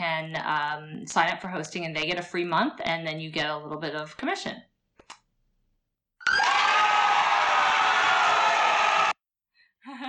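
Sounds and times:
speech: 0.2s - 4.7s
crowd cheering sound effect: 6.2s - 9.2s.

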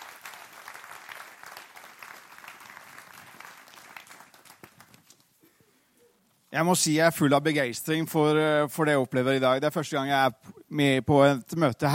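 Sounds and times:
audience applause: 0.0s - 5.1s
speech: 6.6s - 11.9s.

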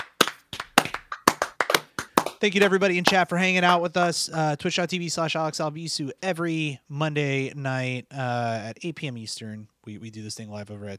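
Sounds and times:
hands clapping: 0.0s - 3.9s
speech: 2.4s - 10.9s.

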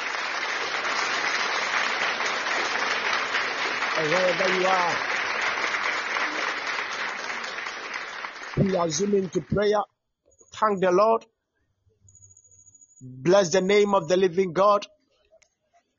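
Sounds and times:
audience clapping hands: 0.0s - 9.8s
speech: 4.0s - 5.1s, 8.6s - 9.9s, 10.6s - 11.3s, 13.0s - 15.0s.

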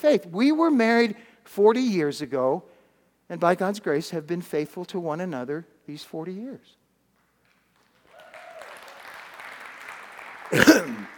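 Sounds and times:
speech: 0.0s - 2.7s, 3.3s - 6.8s, 10.5s - 11.1s
audience applause: 7.8s - 11.1s.

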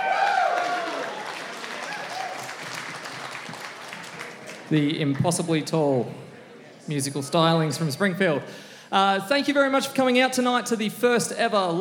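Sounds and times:
audience applause: 0.0s - 4.8s
speech: 4.7s - 6.3s, 6.9s - 11.7s.

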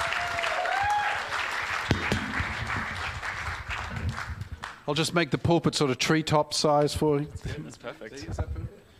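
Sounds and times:
audience applause welcoming speaker: 0.0s - 4.8s
speech: 4.9s - 8.6s.

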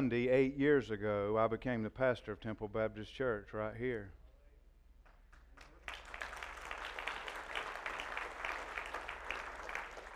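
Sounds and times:
speech: 0.0s - 4.2s
audience applause: 5.6s - 10.1s.

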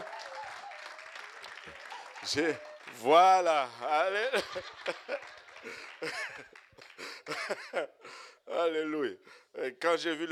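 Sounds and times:
applause: 0.0s - 7.5s
speech: 2.2s - 6.5s, 7.5s - 10.3s
laughter: 4.0s - 8.0s.

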